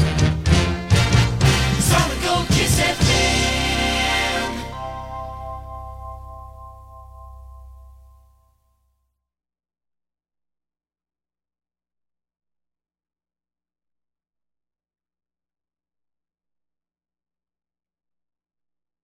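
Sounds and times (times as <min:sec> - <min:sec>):
jingle: 0:00.1 - 0:08.7.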